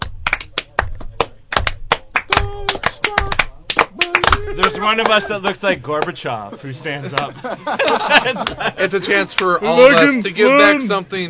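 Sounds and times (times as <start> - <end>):
slow clap: 0.0 - 5.2, 7.9 - 8.6
laughter: 2.4 - 5.7, 6.5 - 10.0
speech: 4.6 - 11.2.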